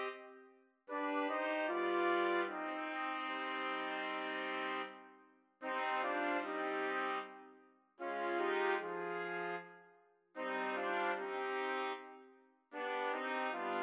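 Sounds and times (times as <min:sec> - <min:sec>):
trumpets playing: 0:00.9 - 0:05.0, 0:05.6 - 0:07.4, 0:08.0 - 0:09.6, 0:10.4 - 0:12.1, 0:12.8 - 0:13.8.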